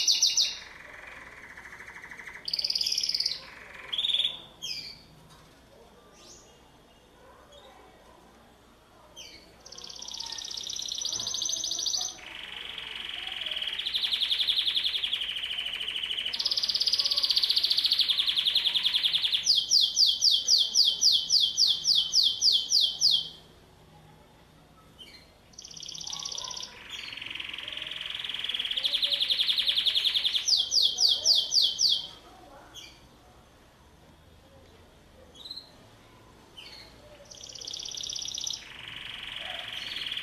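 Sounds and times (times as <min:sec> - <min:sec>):
canary singing: 0:00.0 - 0:05.1, 0:09.2 - 0:23.6, 0:24.8 - 0:33.1, 0:35.3 - 0:35.8, 0:36.6 - 0:40.2.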